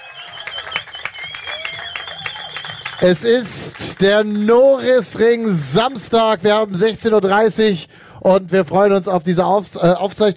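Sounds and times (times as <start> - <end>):
faint high whistle-like tone: 0.0 - 3.0
live audience applause: 0.0 - 6.1
speech: 3.0 - 10.3.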